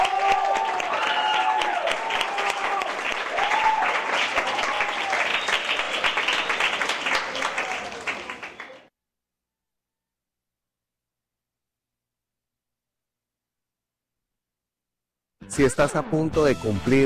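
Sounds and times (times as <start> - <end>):
audience applause: 0.0 - 8.9
speech: 15.6 - 17.0.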